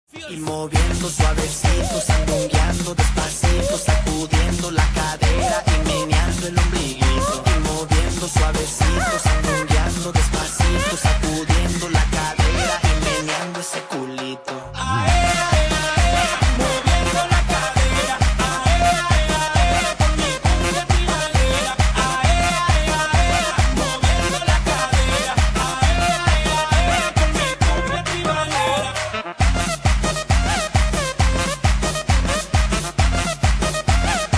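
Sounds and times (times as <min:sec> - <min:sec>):
cumbia tribalera music: 0:00.1 - 0:34.3.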